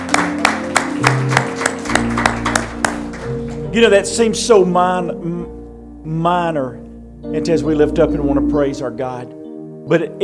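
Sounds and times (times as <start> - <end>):
hand clapping in praise: 0.0 - 3.6
speech: 3.7 - 10.2.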